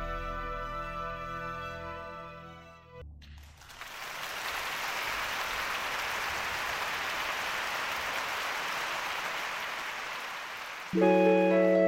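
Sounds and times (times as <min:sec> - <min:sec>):
audience applause on live concert recording: 0:03.4 - 0:11.7.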